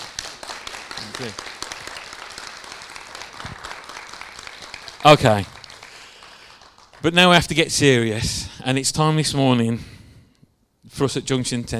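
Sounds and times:
audience applause: 0:00.0 - 0:07.6
speech: 0:01.2 - 0:01.6, 0:05.0 - 0:05.5, 0:07.0 - 0:09.9, 0:11.0 - 0:11.7.

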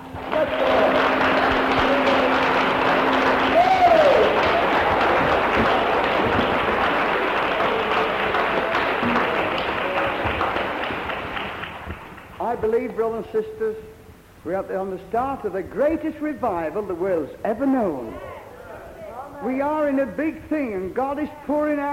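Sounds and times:
audience applauding heartily: 0:00.0 - 0:12.6
whoop: 0:03.5 - 0:05.2
speech: 0:13.2 - 0:18.3, 0:19.4 - 0:21.9.

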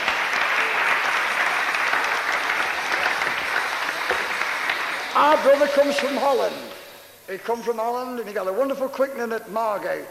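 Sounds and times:
audience clapping: 0:00.0 - 0:07.0
speech: 0:05.2 - 0:06.7, 0:07.3 - 0:10.1.

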